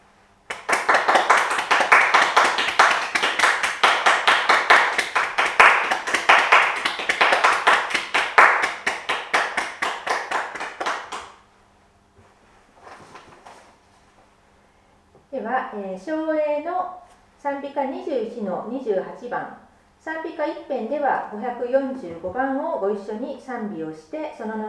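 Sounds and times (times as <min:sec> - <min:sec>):
audience clapping hands: 0:00.5 - 0:11.4
speech: 0:16.0 - 0:16.2, 0:17.6 - 0:24.6.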